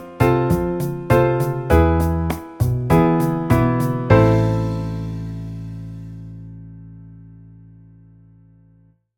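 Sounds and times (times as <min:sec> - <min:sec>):
A minor chord progressions: 0:00.0 - 0:08.8.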